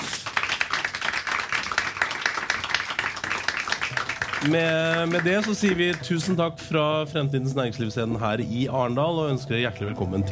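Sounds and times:
audience applause: 0.0 - 6.2
speech: 4.4 - 10.3.

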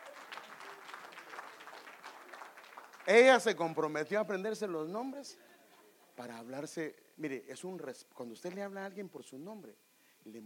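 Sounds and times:
audience applauding: 0.0 - 3.8
speech: 3.1 - 5.5, 6.2 - 10.4.

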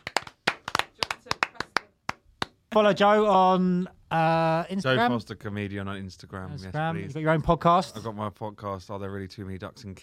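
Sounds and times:
audience applause: 0.0 - 2.6
speech: 2.7 - 10.0.

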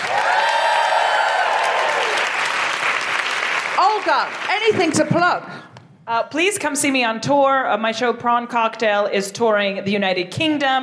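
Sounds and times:
whoops: 0.0 - 2.4
crowd applause: 0.0 - 4.7
speech: 4.0 - 10.8.

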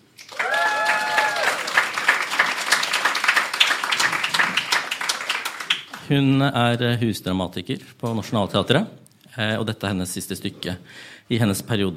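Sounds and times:
audience applause: 0.2 - 6.3
speech: 6.1 - 11.9.

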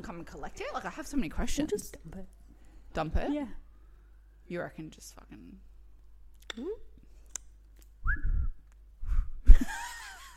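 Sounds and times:
speech: 0.0 - 3.6, 4.5 - 5.7, 6.6 - 6.9, 8.0 - 8.3
person attempting to whistle: 8.0 - 8.6.

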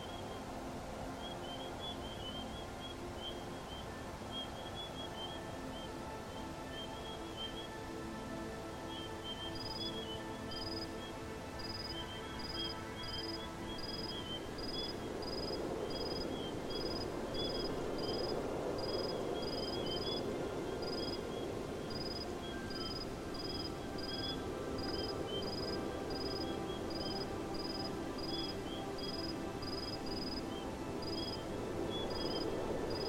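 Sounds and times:
calm sustained bilateral serene music: 0.0 - 33.0
soft steady wind hiss: 0.0 - 33.0.

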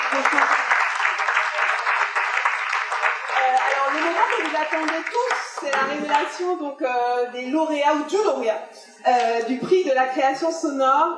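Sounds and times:
audience applause: 0.0 - 6.4
speech: 0.1 - 0.7, 3.5 - 11.1.

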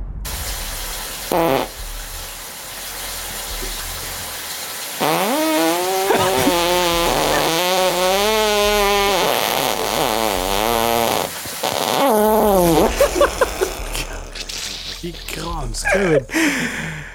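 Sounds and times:
long buzzy fart into the microphone: 1.3 - 2.1, 5.0 - 15.1
laughter: 6.1 - 7.6, 12.7 - 17.0.

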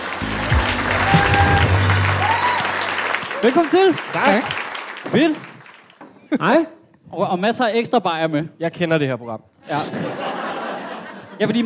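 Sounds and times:
live comedy show audience applause: 0.0 - 5.9
speech: 3.4 - 5.5, 6.3 - 10.2, 11.4 - 11.6
laughter: 9.7 - 11.6.

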